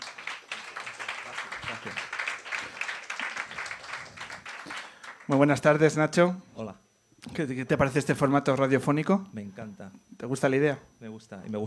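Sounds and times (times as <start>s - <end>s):
audience applause: 0.0s - 5.8s
speech: 1.7s - 2.1s, 5.3s - 11.6s.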